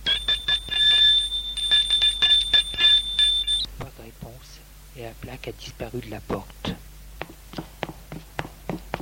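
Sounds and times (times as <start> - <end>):
loud electric doorbell ringing at an apartment: 0.0 - 3.7
speech: 5.1 - 6.8.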